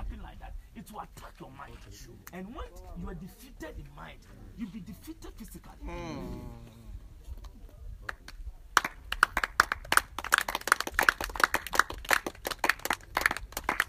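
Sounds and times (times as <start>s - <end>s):
speech: 0.8s - 6.9s
audience clapping: 8.1s - 13.8s.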